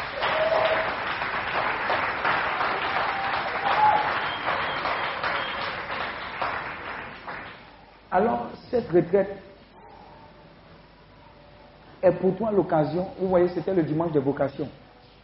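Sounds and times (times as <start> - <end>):
church congregation applauding: 0.0 - 7.7
speech: 8.2 - 9.5, 12.0 - 14.8.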